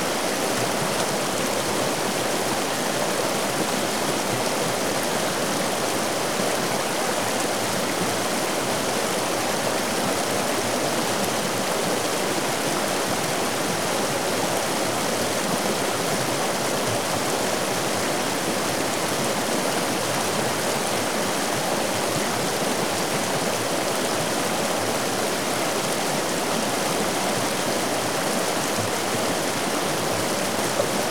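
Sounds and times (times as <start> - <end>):
river flowing: 0.0 - 31.0.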